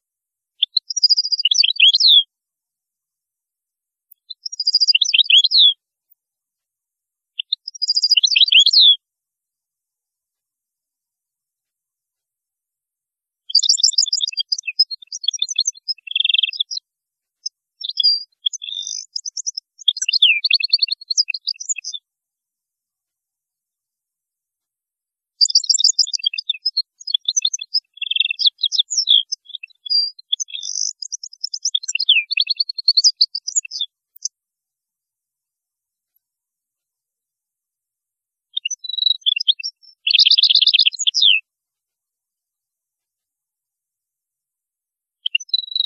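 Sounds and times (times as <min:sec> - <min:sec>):
European goldfinch song: 0:00.6 - 0:02.2, 0:04.3 - 0:05.7, 0:07.4 - 0:09.0, 0:13.5 - 0:16.8, 0:17.8 - 0:22.0, 0:25.4 - 0:34.3, 0:38.6 - 0:41.4, 0:45.3 - 0:45.8.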